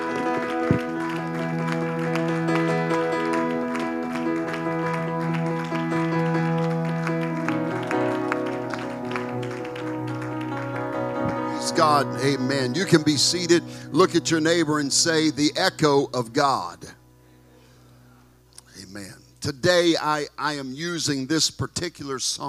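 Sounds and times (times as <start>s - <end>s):
audience clapping hands: 0.0s - 15.9s
sustained organ or keyboard music: 0.0s - 22.4s
speech: 11.8s - 17.0s, 19.5s - 22.4s.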